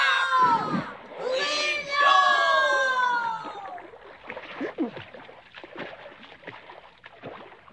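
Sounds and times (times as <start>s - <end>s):
excited voices cheering: 0.0s - 3.9s
oars splashing as a small boat is rowed: 0.0s - 7.7s.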